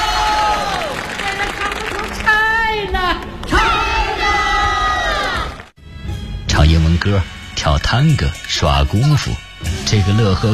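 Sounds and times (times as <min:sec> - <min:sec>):
audience applause at a stage show: 0:00.0 - 0:02.6
audience cheering: 0:00.0 - 0:02.7, 0:03.4 - 0:05.7
speech: 0:07.1 - 0:10.5.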